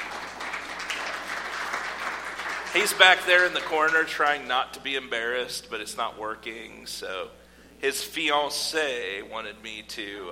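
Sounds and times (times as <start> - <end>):
audience clapping: 0.0 - 4.4
speech: 2.8 - 10.3.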